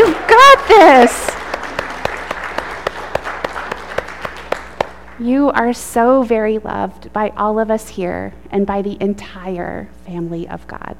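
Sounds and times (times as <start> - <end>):
audience applauding: 0.0 - 5.2
sharp rhythmic claps: 0.0 - 5.2
speech: 1.0 - 1.2, 5.2 - 10.9.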